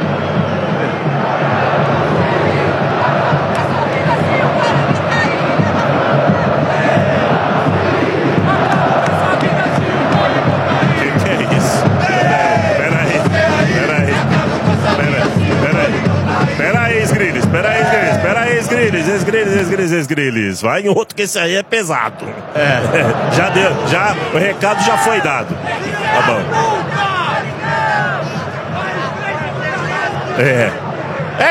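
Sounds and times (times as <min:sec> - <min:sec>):
football fans shouting and chanting in stadium: 0:00.0 - 0:20.0, 0:21.4 - 0:31.4
laughter: 0:10.9 - 0:16.1, 0:22.4 - 0:24.5, 0:30.2 - 0:30.9
speech: 0:20.2 - 0:26.8, 0:30.4 - 0:30.8.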